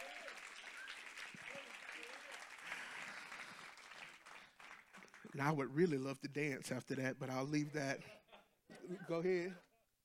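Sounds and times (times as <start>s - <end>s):
audience clapping: 0.0s - 6.1s
speech: 5.3s - 8.2s, 8.9s - 9.7s
laughter: 7.4s - 9.9s.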